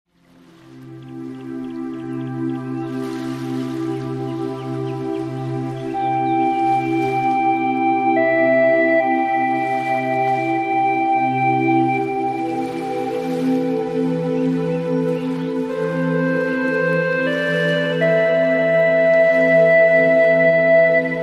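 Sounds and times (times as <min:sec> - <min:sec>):
Chinese hulusi flute music: 0:00.8 - 0:21.2.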